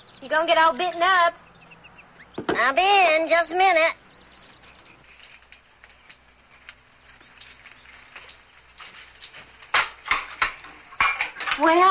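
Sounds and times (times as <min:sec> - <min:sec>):
speech: 0:00.2 - 0:01.4, 0:02.6 - 0:04.0, 0:11.6 - 0:11.8
pots and dishes being handled in a small house kitchen: 0:08.8 - 0:11.8.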